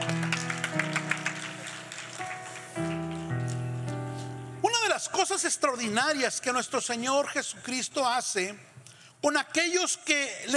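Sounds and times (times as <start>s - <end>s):
crowd applauding loudly: 0.0s - 3.9s
speech: 5.0s - 10.5s.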